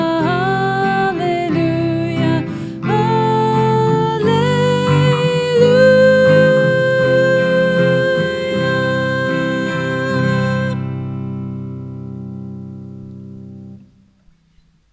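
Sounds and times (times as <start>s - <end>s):
gospel alleluia singing: 0.0s - 11.1s.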